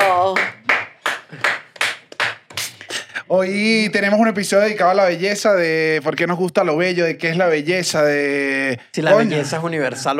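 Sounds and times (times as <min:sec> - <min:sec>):
applause: 0:00.0 - 0:02.4
speech: 0:03.3 - 0:10.1.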